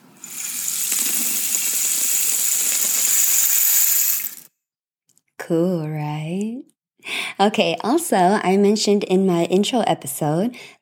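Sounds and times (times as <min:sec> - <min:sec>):
homemade rain stick tipped over, pellets cascading: 0:00.0 - 0:04.5
speech: 0:05.5 - 0:06.7, 0:07.4 - 0:10.8.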